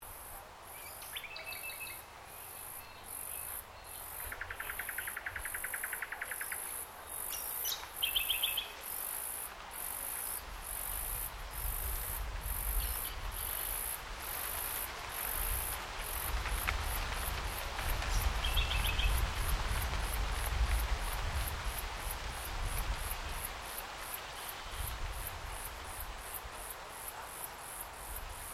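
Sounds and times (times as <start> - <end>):
insects in Yandina Botanic Gardens in Queensland: 0.0 - 28.5
birds in Yandina Botanic Gardens in Queensland: 0.8 - 9.2, 18.0 - 19.2.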